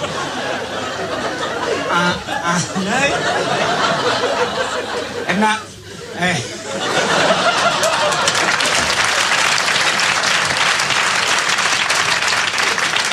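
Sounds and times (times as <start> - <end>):
laughter: 0.0 - 11.3
speech: 2.0 - 7.2
audience applause: 7.0 - 13.1.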